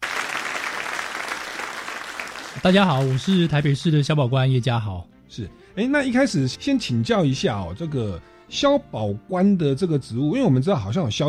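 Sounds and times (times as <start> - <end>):
audience applause: 0.0 - 3.8
speech: 2.6 - 11.2.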